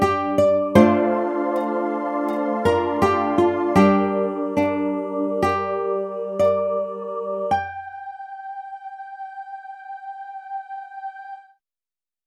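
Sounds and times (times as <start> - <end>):
ukulele folk song: 0.0 - 8.0.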